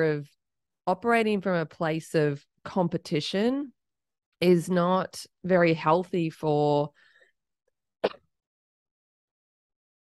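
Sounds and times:
speech: 0:00.0 - 0:03.8, 0:04.4 - 0:07.0
person sneezing: 0:08.0 - 0:08.2.

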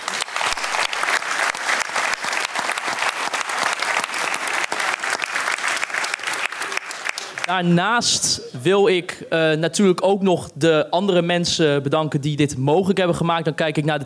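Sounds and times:
audience applause: 0:00.0 - 0:07.5
speech: 0:07.5 - 0:14.0.

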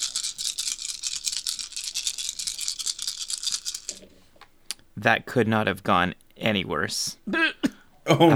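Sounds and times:
dice rattling: 0:00.0 - 0:04.5
speech: 0:03.9 - 0:04.2, 0:05.0 - 0:08.3.

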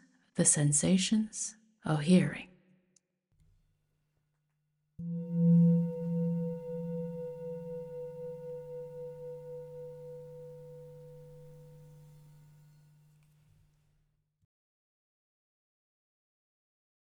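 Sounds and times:
speech: 0:00.4 - 0:02.5
meditation bell ringing: 0:05.0 - 0:13.0.

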